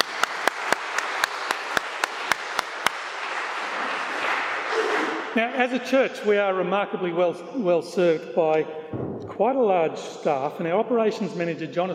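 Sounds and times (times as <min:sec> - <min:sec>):
sharp evenly timed claps: 0:00.0 - 0:04.7
audience applause: 0:00.0 - 0:05.4
speech: 0:05.4 - 0:11.9.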